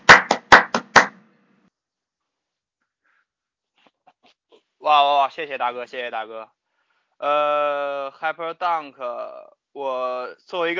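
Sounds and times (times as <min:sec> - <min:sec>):
clapping: 0:00.0 - 0:01.2
speech: 0:04.8 - 0:06.6, 0:07.2 - 0:10.7.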